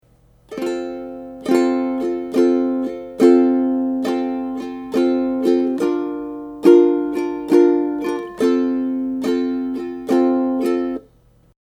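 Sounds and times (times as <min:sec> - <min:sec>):
ukulele strumming: 0:00.1 - 0:11.4.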